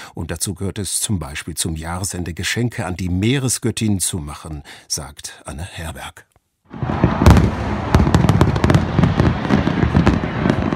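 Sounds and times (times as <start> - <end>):
speech: 0.2 - 8.1
fireworks exploding over the bay: 6.7 - 10.7.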